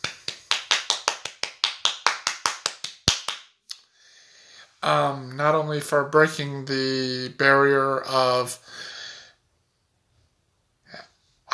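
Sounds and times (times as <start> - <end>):
single pair of hands clapping: 0.0 - 3.9
speech: 4.8 - 8.9.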